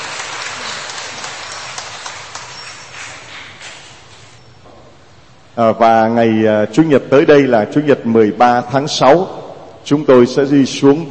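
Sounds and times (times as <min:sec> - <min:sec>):
audience applause: 0:00.0 - 0:03.8
speech: 0:05.6 - 0:11.0.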